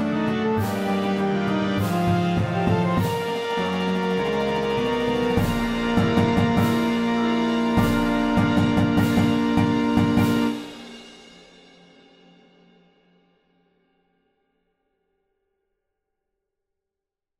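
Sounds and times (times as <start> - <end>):
fanfare percussion: 0.0 - 11.6.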